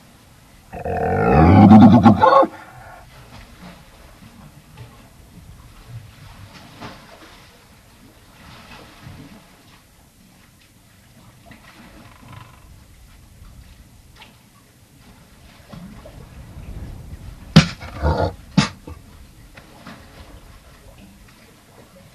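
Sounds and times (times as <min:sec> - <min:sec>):
Galapagos fur seal grunting and barking: 0:00.7 - 0:03.0, 0:17.6 - 0:19.0.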